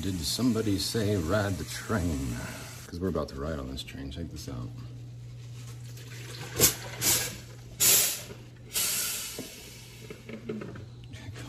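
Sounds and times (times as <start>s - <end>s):
coffee maker hissing while brewing: 0.0s - 2.9s, 6.2s - 10.7s
speech: 0.0s - 4.9s
low electrical hum: 0.0s - 11.4s.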